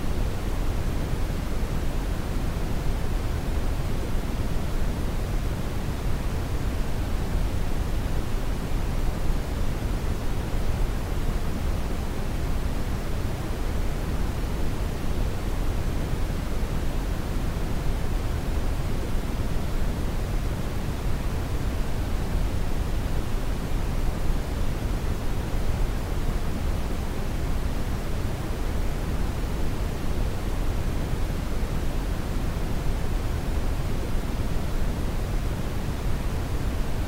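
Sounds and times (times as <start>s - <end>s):
white noise: 0.0s - 37.0s.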